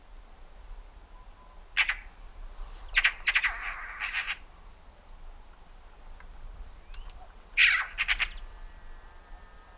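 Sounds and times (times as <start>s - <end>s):
Eurasian magpie Pica pica harsh rasping chatter: 1.8s - 2.1s, 2.9s - 4.4s, 7.1s - 8.4s.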